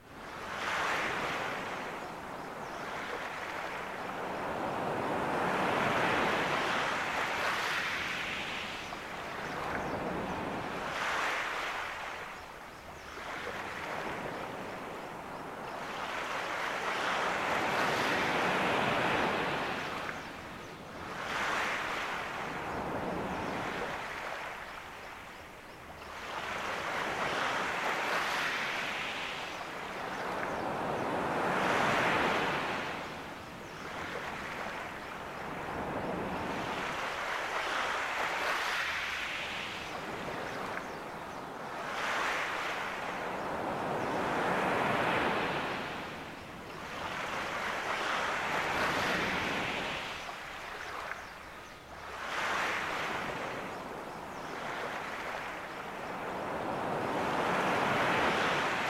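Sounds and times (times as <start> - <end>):
beach ambience: 0.0 - 58.8.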